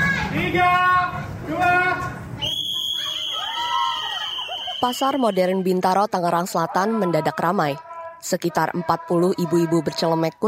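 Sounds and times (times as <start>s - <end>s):
excited voices: 0.0s - 10.4s
speech: 0.4s - 0.9s, 4.8s - 10.4s
whistle blown to start the activity: 2.4s - 5.6s.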